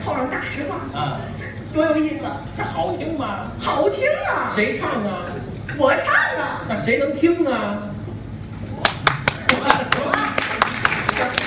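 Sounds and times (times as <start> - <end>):
speech: 0.2 - 8.0
uneven audience clapping: 8.8 - 11.4.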